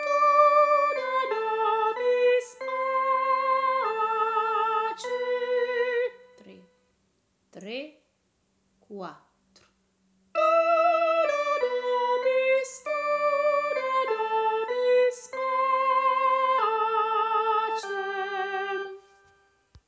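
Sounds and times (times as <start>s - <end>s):
sopranos singing: 0.0s - 6.6s, 10.4s - 19.2s.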